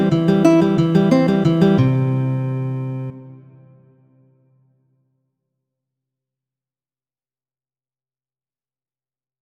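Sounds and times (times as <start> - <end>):
prelude music: 0.0 - 4.6.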